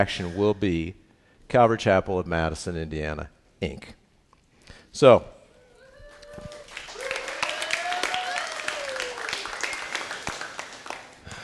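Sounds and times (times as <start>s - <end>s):
speech: 0.0s - 4.0s, 4.9s - 5.4s
church congregation clapping: 6.1s - 11.4s.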